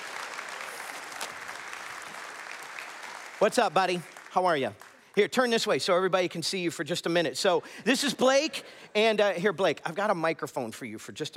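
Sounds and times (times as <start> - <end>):
audience applause: 0.0 - 5.1
speech: 3.4 - 11.3.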